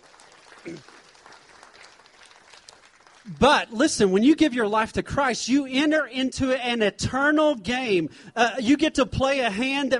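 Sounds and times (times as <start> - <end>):
audience applause: 0.0 - 3.6
speech: 0.6 - 1.0, 3.2 - 9.9.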